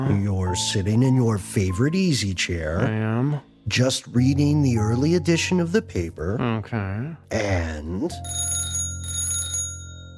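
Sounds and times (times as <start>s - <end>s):
speech: 0.1s - 8.5s
telephone ringing: 8.2s - 10.1s.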